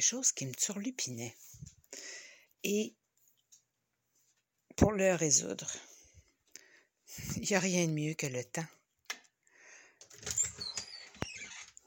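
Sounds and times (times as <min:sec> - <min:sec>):
speech: 0:00.0 - 0:03.0, 0:04.8 - 0:05.9, 0:07.1 - 0:08.8
wardrobe door opening: 0:10.1 - 0:11.8.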